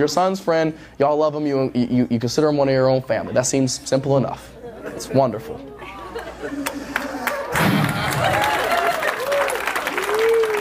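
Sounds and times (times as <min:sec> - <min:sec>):
speech: 0:00.0 - 0:07.0
laughter: 0:04.5 - 0:10.4
audience clapping: 0:06.6 - 0:10.5.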